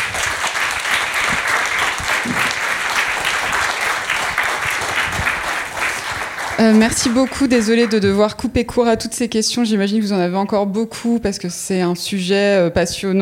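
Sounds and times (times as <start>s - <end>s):
full room of people applauding: 0.0s - 8.3s
speech: 6.6s - 13.2s.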